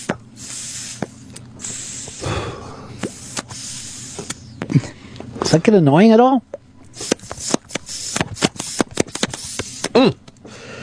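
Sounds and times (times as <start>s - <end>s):
hissing from smoking on air: 0.0s - 4.6s, 6.9s - 10.0s
speech: 5.5s - 6.6s.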